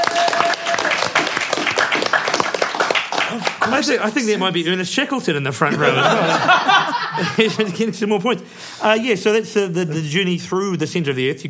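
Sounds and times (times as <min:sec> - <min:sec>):
audience applause: 0:00.0 - 0:04.0
speech: 0:03.7 - 0:11.4
laughter: 0:05.6 - 0:08.2.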